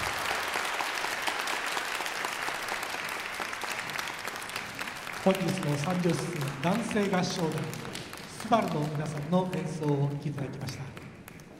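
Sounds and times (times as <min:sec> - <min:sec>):
audience applause: 0:00.0 - 0:11.5
speech: 0:05.2 - 0:11.0.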